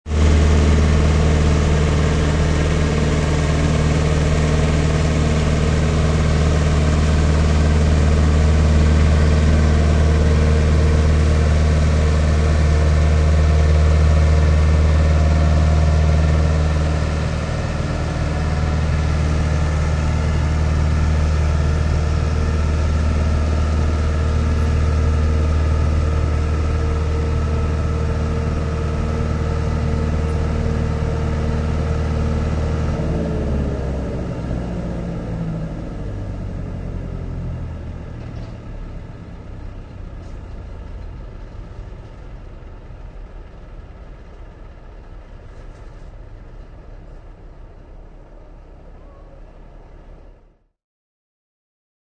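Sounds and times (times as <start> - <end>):
huge leaf collector truck sucking leaves from curbside: 0.1 - 36.5.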